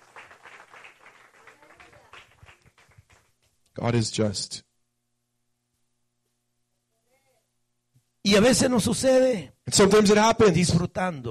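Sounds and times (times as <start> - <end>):
audience applauding: 0.0 - 3.5
speech: 3.8 - 4.7, 8.3 - 11.2.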